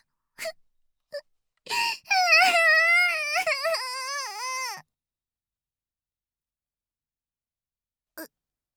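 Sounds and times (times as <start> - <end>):
girl crying: 1.7 - 4.8.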